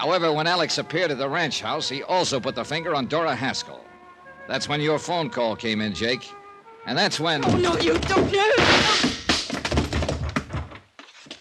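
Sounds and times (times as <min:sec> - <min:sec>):
speech: 0:00.0 - 0:03.9, 0:04.5 - 0:09.1
person falling to the floor with heavy thumps: 0:07.4 - 0:11.3
punch landing: 0:07.6 - 0:10.4.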